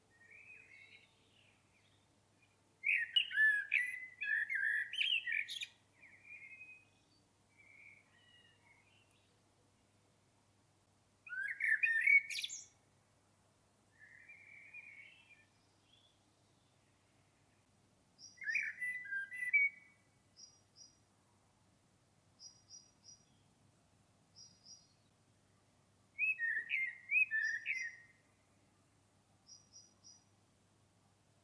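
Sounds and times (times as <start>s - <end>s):
common blackbird warbled song: 0.0s - 9.4s, 11.2s - 12.8s, 13.9s - 21.1s, 22.4s - 23.6s, 24.3s - 28.8s, 29.4s - 30.4s.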